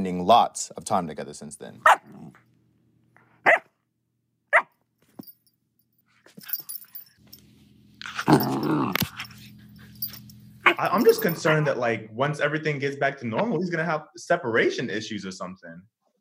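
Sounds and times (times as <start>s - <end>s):
speech: 0.0s - 2.4s, 8.3s - 9.1s, 10.8s - 15.9s
black lab terrier mix puppy barking and growling: 1.8s - 2.4s, 3.4s - 3.8s, 4.5s - 4.8s, 8.0s - 11.7s.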